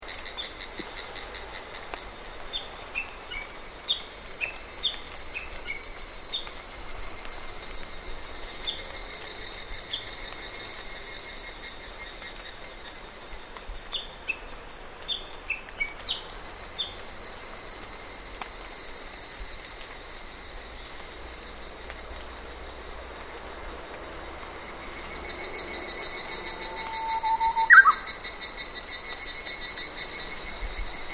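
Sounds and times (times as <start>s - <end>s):
summer rain in Sannohe forest: 0.0s - 31.1s
birds in Sannohe forest: 24.8s - 31.1s.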